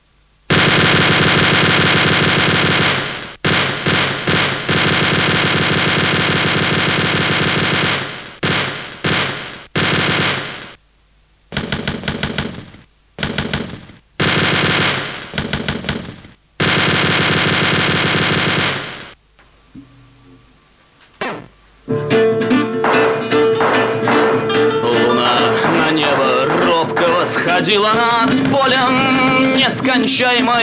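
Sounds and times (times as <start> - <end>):
machine gun firing: 0.5 - 10.8, 11.5 - 19.2, 22.8 - 30.6
guitar: 19.7 - 30.6
speech: 30.0 - 30.6.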